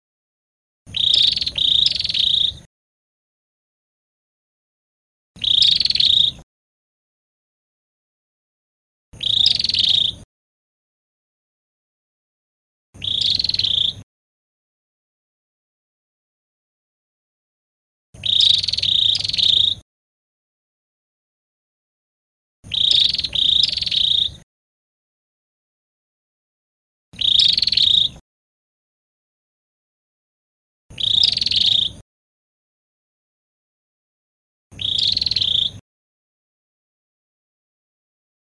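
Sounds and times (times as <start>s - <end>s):
Cambodian prinia bird singing: 0.9s - 2.7s, 5.4s - 6.4s, 9.2s - 10.2s, 13.0s - 14.0s, 18.2s - 19.8s, 22.6s - 24.4s, 27.2s - 28.2s, 30.9s - 32.0s, 34.7s - 35.8s.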